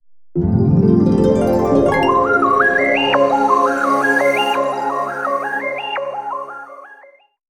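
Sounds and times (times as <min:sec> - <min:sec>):
jingle: 0:00.4 - 0:05.1.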